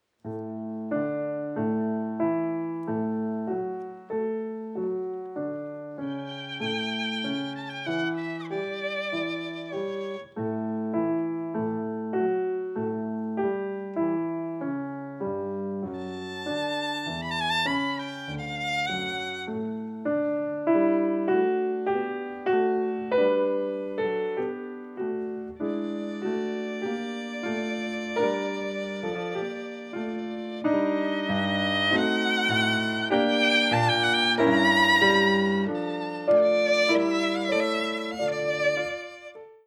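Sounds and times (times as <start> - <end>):
violin and piano andante: 0.0 - 39.6.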